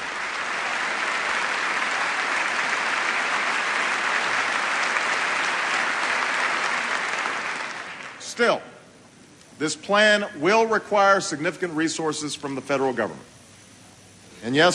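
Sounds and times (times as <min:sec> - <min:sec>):
audience applause: 0:00.0 - 0:08.2
speech: 0:08.4 - 0:08.7, 0:09.6 - 0:13.4, 0:14.4 - 0:14.7.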